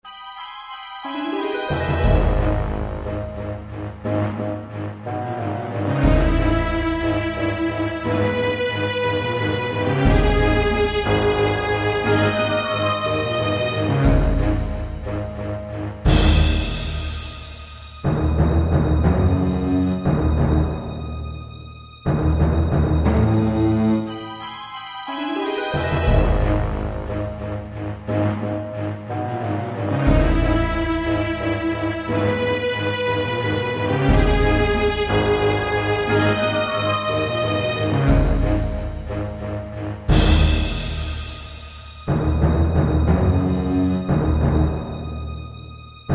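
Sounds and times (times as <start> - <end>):
suspenseful action music: 0.1 - 46.1.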